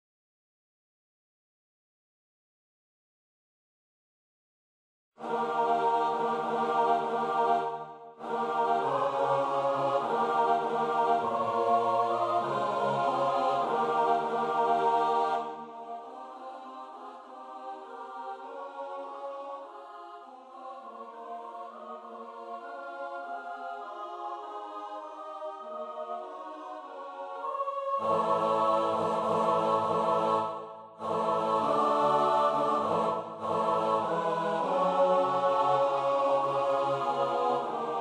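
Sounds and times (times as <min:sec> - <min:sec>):
choir singing: 0:05.2 - 0:37.9.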